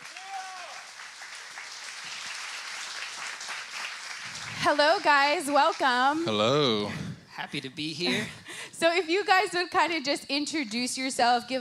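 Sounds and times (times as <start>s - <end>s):
rising-and-falling whistle or cheer: 0.0s - 0.8s
crowd applause: 0.0s - 6.4s
speech: 4.6s - 11.5s.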